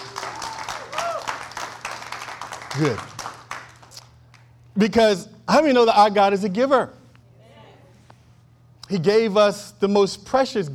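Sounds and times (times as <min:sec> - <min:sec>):
audience clapping: 0:00.0 - 0:04.5
speech: 0:02.8 - 0:03.1, 0:04.8 - 0:07.0, 0:08.9 - 0:10.7.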